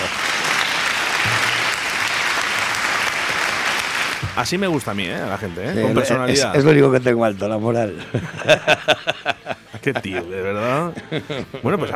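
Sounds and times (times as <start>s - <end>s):
applause: 0.0s - 4.9s
speech: 4.4s - 11.9s
laughter: 7.9s - 11.9s.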